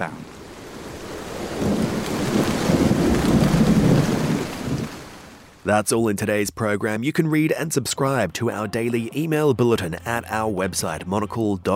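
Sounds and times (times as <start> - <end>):
speech: 0.0 - 0.2, 5.7 - 11.7
rain shower drumming on window: 0.0 - 5.6.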